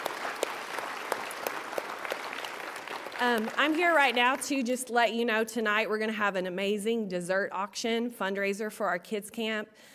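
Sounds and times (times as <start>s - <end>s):
audience applause: 0.0s - 4.5s
speech: 3.2s - 9.9s.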